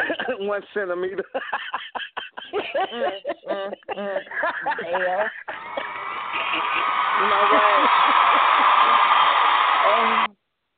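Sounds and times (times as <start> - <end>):
laughter: 0.0 - 9.6
speech: 0.3 - 5.4, 6.6 - 9.0, 9.8 - 10.3
crowd applause: 5.5 - 10.3.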